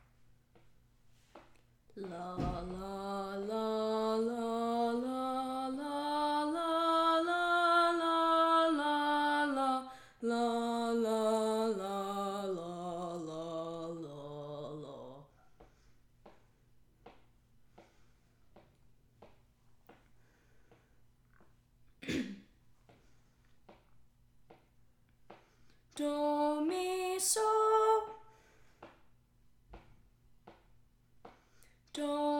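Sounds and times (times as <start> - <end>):
tenor singing: 1.9 - 15.3, 26.0 - 28.2, 31.9 - 32.3.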